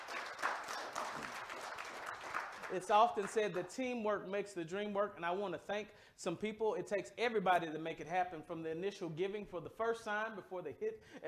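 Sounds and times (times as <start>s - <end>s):
crowd of people clapping their hands in applause: 0.0s - 3.8s
speech: 2.7s - 11.2s.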